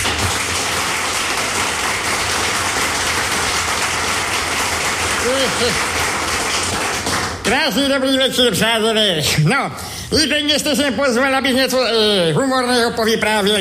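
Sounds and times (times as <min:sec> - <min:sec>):
audience applause welcoming a performer: 0:00.0 - 0:07.5
speech: 0:05.4 - 0:06.0, 0:07.5 - 0:13.5.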